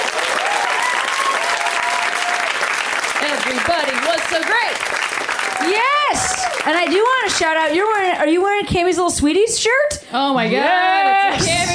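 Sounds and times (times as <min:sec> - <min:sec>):
sizable crowd applauding comedians: 0:00.0 - 0:08.3, 0:11.3 - 0:11.7
faint whoops and cheers: 0:00.2 - 0:02.6, 0:05.4 - 0:06.7
speech: 0:03.8 - 0:11.7.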